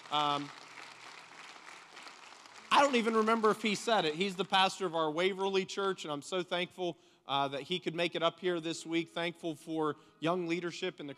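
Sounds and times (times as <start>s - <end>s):
applause: 0.0s - 4.6s
speech: 0.1s - 0.6s, 2.7s - 11.1s.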